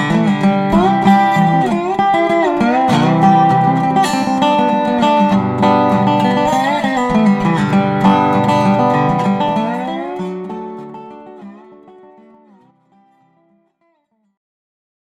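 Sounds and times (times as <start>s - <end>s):
bluegrass band jamming: 0.0s - 10.8s.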